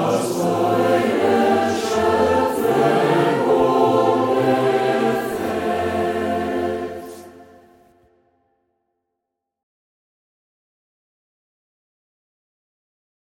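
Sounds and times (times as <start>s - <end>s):
choir singing: 0.0s - 8.2s.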